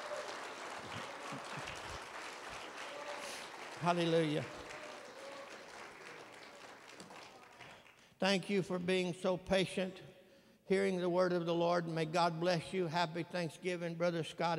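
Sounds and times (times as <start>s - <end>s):
audience clapping hands: 0.0s - 8.2s
speech: 3.8s - 4.6s, 8.2s - 10.1s, 10.7s - 14.5s.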